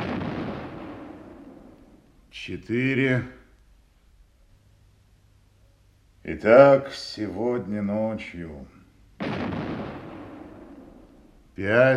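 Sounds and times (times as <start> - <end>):
six-inch artillery battery firing a salute: 0.0 - 2.0, 9.2 - 11.4
speech: 2.3 - 3.4, 6.3 - 8.8, 11.6 - 11.9.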